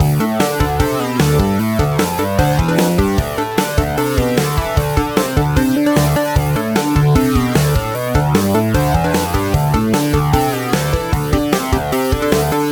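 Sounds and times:
band playing: 0.0 - 12.7.

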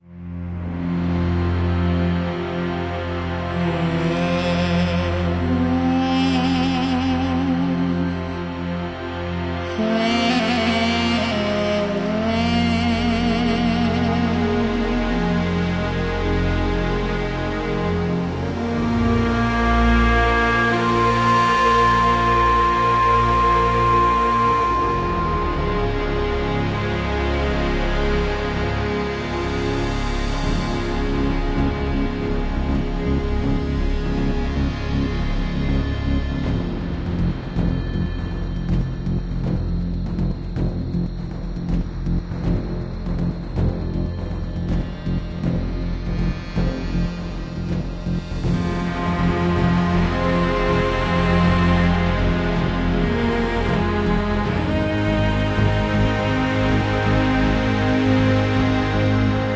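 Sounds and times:
background music: 0.0 - 59.5.

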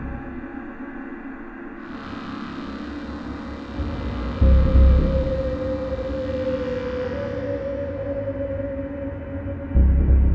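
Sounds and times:
day stinger: 1.8 - 10.3.

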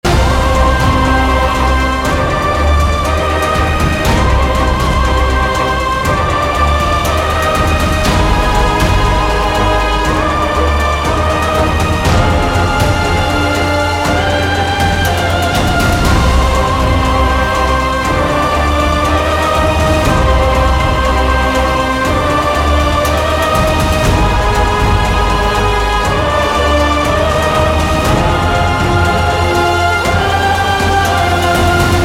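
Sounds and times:
action music loop: 0.0 - 32.0.

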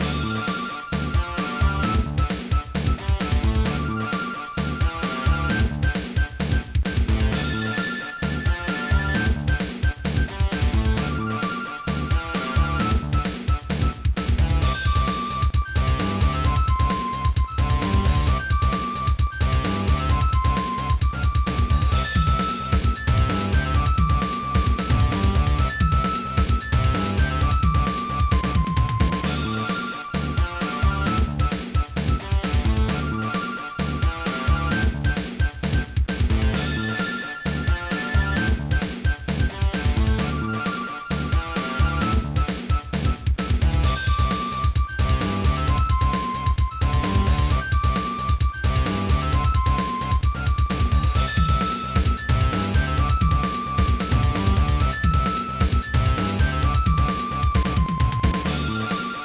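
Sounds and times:
background music: 0.0 - 59.2.

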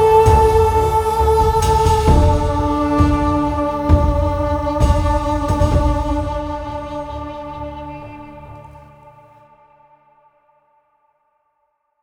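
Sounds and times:
warrior funeral music: 0.0 - 9.4.

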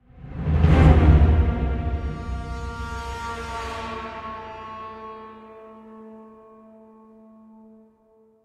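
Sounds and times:
string instrument: 0.0 - 8.4.

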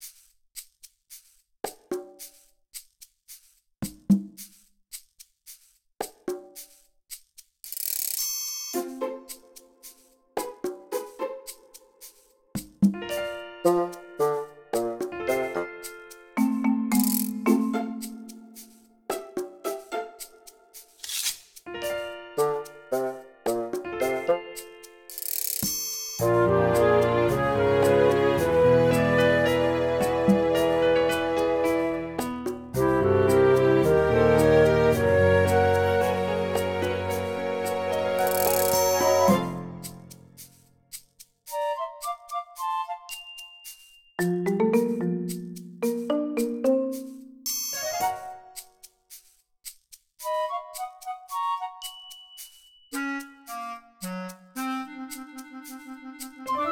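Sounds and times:
comical background music: 8.7 - 25.1, 26.2 - 40.6, 41.5 - 48.7, 50.2 - 56.7.

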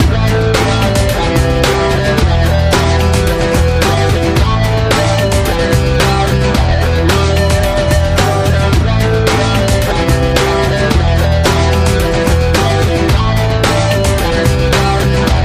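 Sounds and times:
music loop: 0.0 - 15.4.

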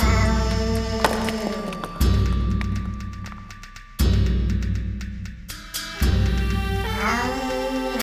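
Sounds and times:
vocals: 0.0 - 3.5, 5.7 - 8.0
suspense rhythm: 0.0 - 7.9.

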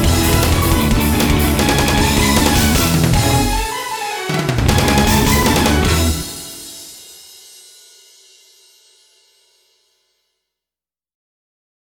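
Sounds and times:
backing track without guitar: 0.0 - 7.0.

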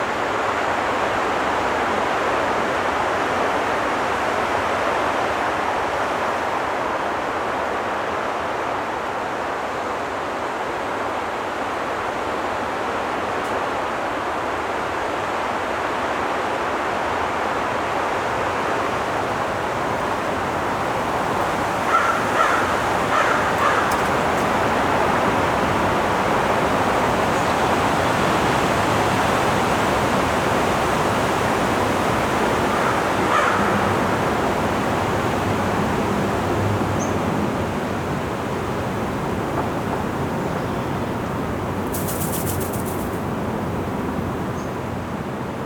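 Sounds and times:
river flowing: 0.0 - 45.6.

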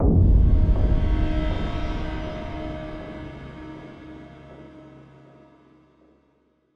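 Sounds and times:
pain music stinger: 0.0 - 5.2.

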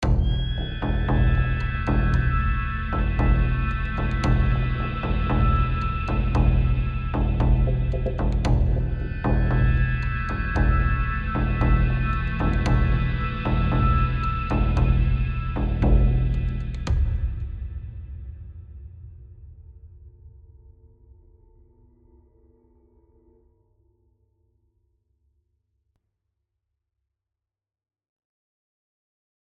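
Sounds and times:
high tension music: 0.0 - 18.4.

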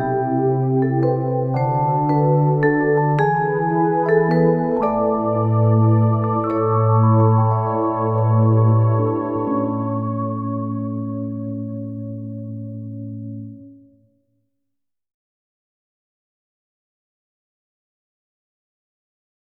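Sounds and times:
vibraphone: 0.0 - 13.8.

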